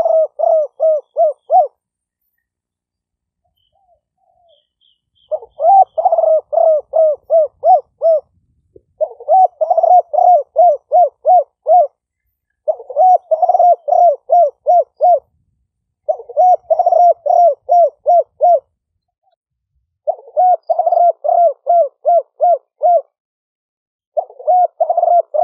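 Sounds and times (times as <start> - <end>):
spotted dove cooing: 0.0 - 1.8, 3.8 - 12.0, 12.6 - 15.4, 16.0 - 18.7, 20.0 - 23.2, 24.2 - 25.4.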